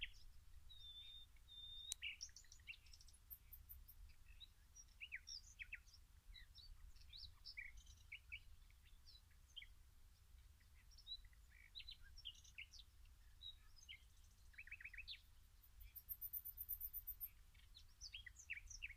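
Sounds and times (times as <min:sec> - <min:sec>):
Common nightingale Luscinia megarhynchos singing: 0:00.0 - 0:09.8, 0:10.5 - 0:18.9.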